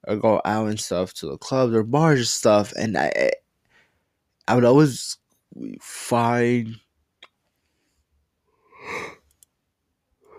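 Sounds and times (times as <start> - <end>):
speech: 0.0 - 3.4, 4.5 - 6.8
faint breaths: 3.6 - 4.2, 7.5 - 9.3
person yawning: 8.8 - 9.2.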